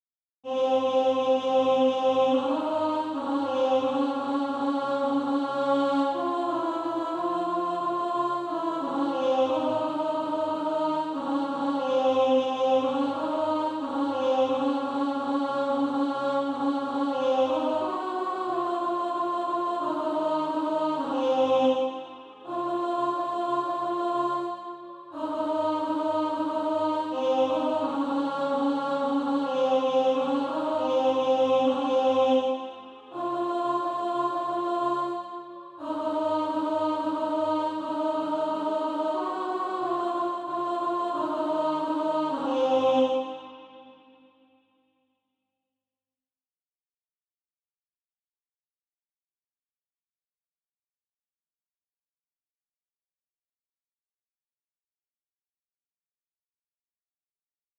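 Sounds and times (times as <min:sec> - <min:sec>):
alto voice singing practice music: 0:00.5 - 0:44.1.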